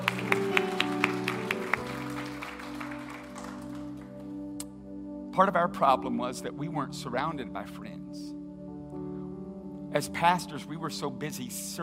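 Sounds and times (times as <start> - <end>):
one person clapping: 0.0 - 4.7
speech: 5.4 - 8.4, 10.0 - 11.8.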